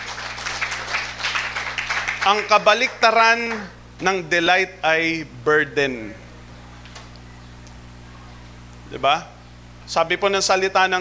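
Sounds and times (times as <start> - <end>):
church congregation clapping during a sermon: 0.0 - 3.8
low electrical hum: 0.0 - 10.9
speech: 2.3 - 6.2, 8.9 - 9.3, 9.9 - 10.9.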